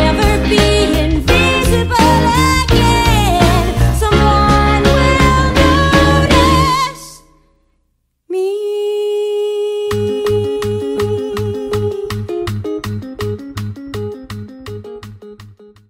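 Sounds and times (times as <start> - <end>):
person singing: 0.0 - 7.2, 8.3 - 12.6.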